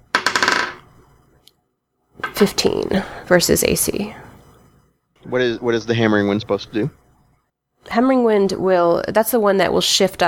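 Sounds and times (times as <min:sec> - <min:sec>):
dice clattering across a hard surface: 0:00.1 - 0:00.9
speech: 0:02.4 - 0:04.2, 0:05.3 - 0:07.0, 0:07.8 - 0:10.2.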